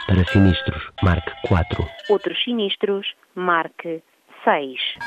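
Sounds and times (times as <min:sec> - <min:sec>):
tinny distorted electronic telephone hold melody: 0:00.1 - 0:01.9
speech: 0:00.1 - 0:05.0.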